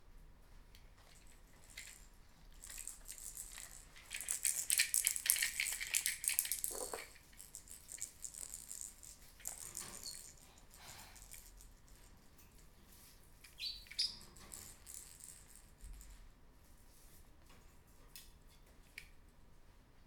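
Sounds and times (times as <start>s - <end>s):
baby's rattle shaking: 1.0s - 12.3s, 13.8s - 16.2s.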